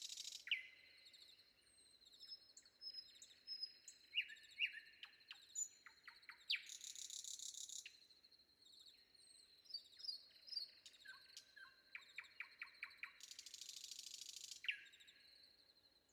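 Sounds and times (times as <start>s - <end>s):
nightingale singing before dawn: 0.0s - 0.8s, 2.2s - 8.0s, 9.7s - 15.1s.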